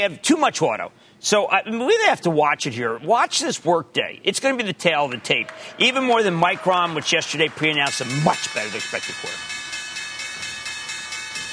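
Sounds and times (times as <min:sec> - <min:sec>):
speech: 0:00.0 - 0:09.6
stock exchange opening bell ringing: 0:07.9 - 0:11.5.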